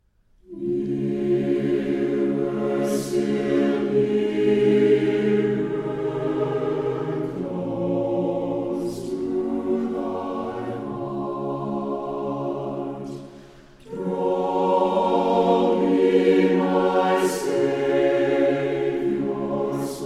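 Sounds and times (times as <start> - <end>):
chorale: 0.0 - 20.0.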